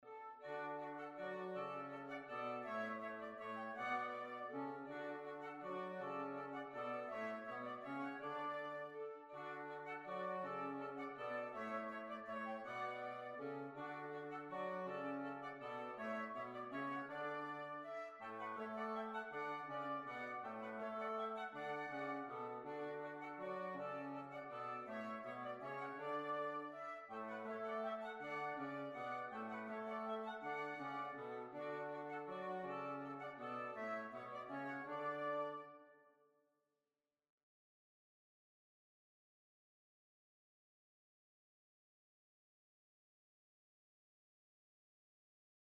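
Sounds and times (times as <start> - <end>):
waltz music: 0.2 - 35.7.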